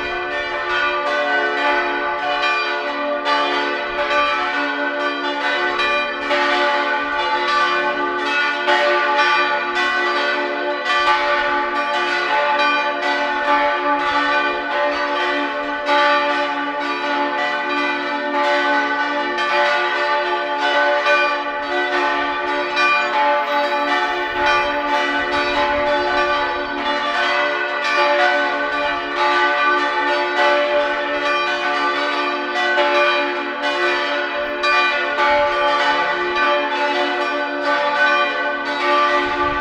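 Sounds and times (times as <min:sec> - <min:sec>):
parish church bells ringing in Freienbach: 0:00.0 - 0:39.5.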